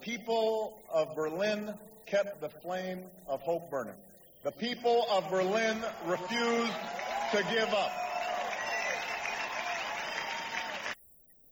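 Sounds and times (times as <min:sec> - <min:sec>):
speech: 0:00.0 - 0:08.0
crowd applause at a speech: 0:05.9 - 0:11.0.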